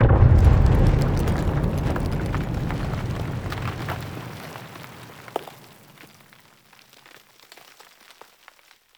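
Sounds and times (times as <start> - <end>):
battle ambient tunnel rumble: 0.0 - 5.5.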